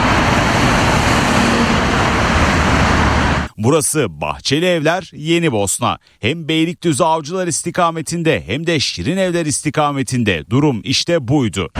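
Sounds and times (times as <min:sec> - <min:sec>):
heavy congested road traffic on the D100 highway in Istanbul: 0:00.0 - 0:03.6
speech: 0:03.6 - 0:11.7.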